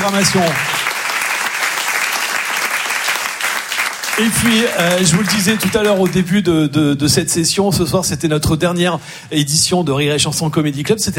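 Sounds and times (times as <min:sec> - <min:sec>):
speech: 0:00.0 - 0:00.8, 0:04.2 - 0:11.1
comedy club audience applauding the sound, lighting and stage crews: 0:00.0 - 0:06.2.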